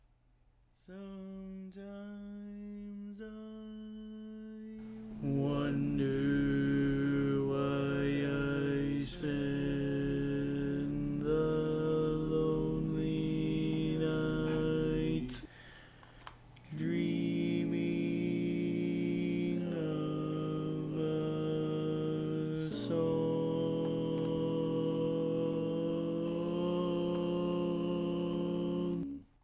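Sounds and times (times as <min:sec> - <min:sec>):
barbershop baritone singing: 0:04.8 - 0:15.5, 0:16.7 - 0:29.2.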